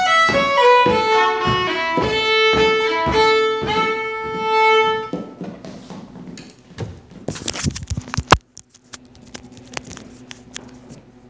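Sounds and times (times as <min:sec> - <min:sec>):
fiddle: 0:00.0 - 0:05.4.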